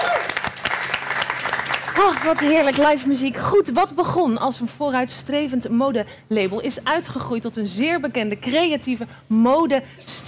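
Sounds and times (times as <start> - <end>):
audience applause: 0.0 - 2.7
speech: 2.0 - 10.2.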